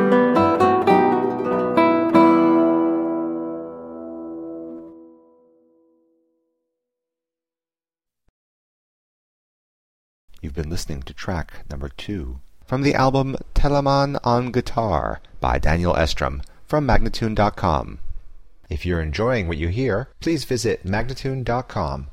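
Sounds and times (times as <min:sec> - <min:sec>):
vivace guitar playing: 0:00.0 - 0:05.5
person speaking: 0:10.3 - 0:22.1.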